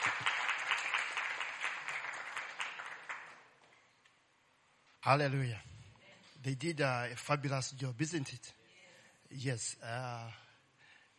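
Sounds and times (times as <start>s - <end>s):
crowd applauding for worship team: 0.0s - 3.5s
speech: 5.0s - 5.7s, 6.4s - 8.6s, 9.3s - 10.4s.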